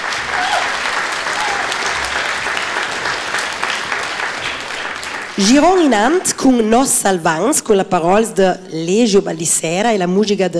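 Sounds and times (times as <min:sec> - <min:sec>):
audience applause: 0:00.0 - 0:06.7
speech: 0:05.4 - 0:10.5.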